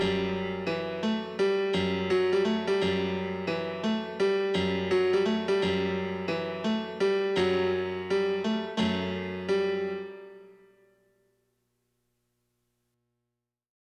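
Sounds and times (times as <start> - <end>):
instrumental music: 0.0 - 10.8.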